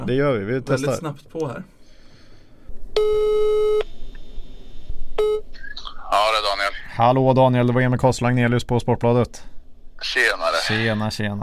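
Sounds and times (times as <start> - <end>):
speech: 0.0 - 1.8, 6.3 - 11.4
faint noise: 0.0 - 11.4
electronic telephone dialing and ringing tone: 3.0 - 3.9.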